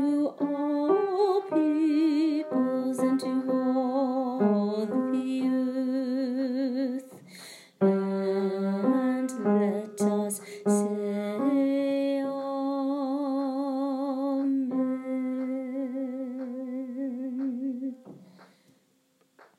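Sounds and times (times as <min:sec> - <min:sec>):
alto voice singing: 0:00.0 - 0:18.2.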